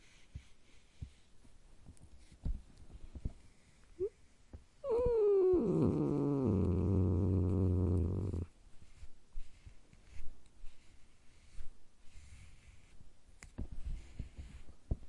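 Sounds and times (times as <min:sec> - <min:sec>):
domestic cat growling: 0:04.8 - 0:08.5.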